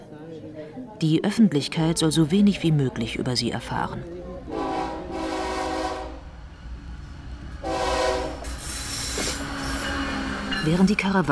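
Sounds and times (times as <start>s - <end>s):
speech: 1.0s - 4.2s, 10.6s - 11.3s
train rumbling on rails: 3.8s - 11.3s
train horn blasts: 4.5s - 6.3s, 7.6s - 8.6s.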